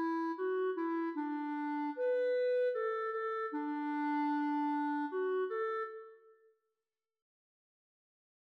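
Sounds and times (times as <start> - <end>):
clarinet: 0.0 - 6.6.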